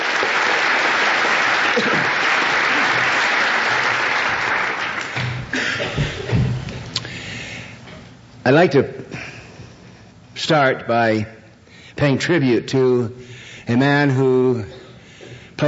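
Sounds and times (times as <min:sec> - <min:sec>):
audience applause: 0:00.0 - 0:06.2
speech: 0:08.5 - 0:09.3, 0:10.4 - 0:11.4, 0:12.0 - 0:14.8.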